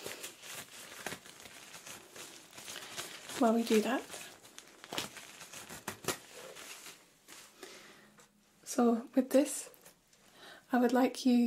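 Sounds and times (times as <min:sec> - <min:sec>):
gloves being peeled off: 0:00.0 - 0:07.6
speech: 0:03.4 - 0:04.2, 0:08.8 - 0:09.7, 0:10.7 - 0:11.4.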